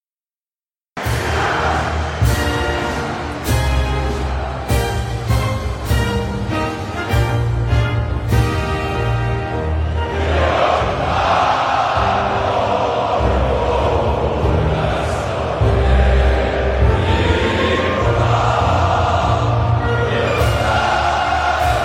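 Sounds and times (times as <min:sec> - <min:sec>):
national anthem: 0:01.0 - 0:21.8.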